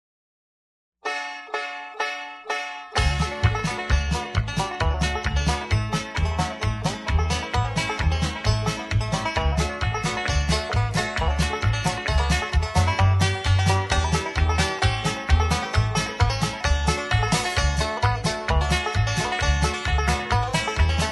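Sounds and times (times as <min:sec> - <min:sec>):
hand-picked square dance music: 0:02.5 - 0:21.1.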